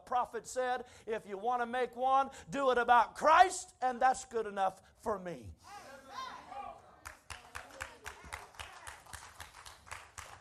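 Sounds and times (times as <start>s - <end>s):
speech: 0.1s - 6.2s
audience clapping: 7.0s - 10.3s.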